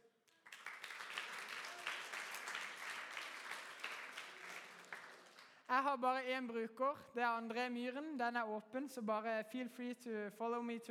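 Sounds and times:
applause: 0.0s - 5.7s
speech: 5.7s - 10.9s.

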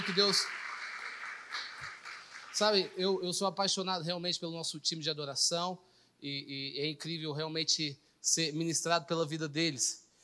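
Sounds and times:
large crowd applauding: 0.0s - 3.2s
speech: 0.1s - 0.6s, 2.6s - 10.0s.

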